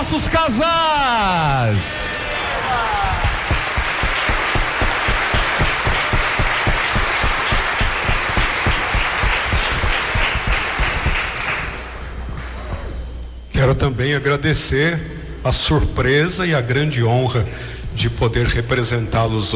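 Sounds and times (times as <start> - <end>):
speech: 0.0 - 3.3, 13.6 - 19.5
audience applauding the parish family ministry: 2.3 - 12.0.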